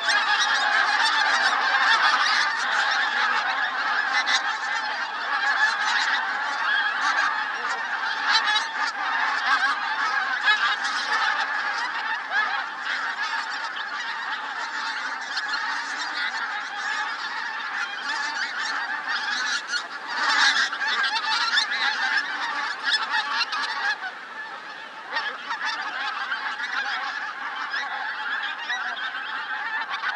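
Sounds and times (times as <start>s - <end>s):
pink-footed geese honking together: 0.0s - 30.1s.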